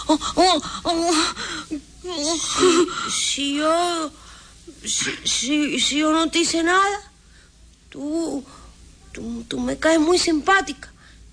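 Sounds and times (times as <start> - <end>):
woman crying and sobbing: 0.0 - 4.1
speech: 0.1 - 7.1, 7.9 - 8.6, 9.2 - 10.9.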